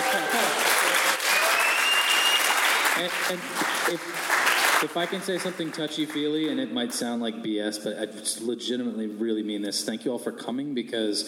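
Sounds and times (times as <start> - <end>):
live podcast audience clapping: 0.0 - 6.6
speech: 3.0 - 11.2.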